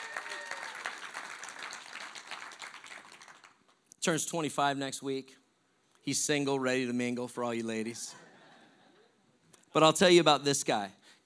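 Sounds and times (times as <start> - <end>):
audience applause: 0.0 - 3.6
speech: 4.0 - 5.4, 6.0 - 8.2, 9.8 - 11.0.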